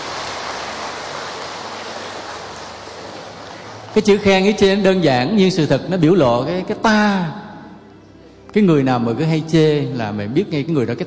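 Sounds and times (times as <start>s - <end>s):
round of applause: 0.0s - 4.3s
speech: 4.0s - 7.4s, 8.5s - 11.0s.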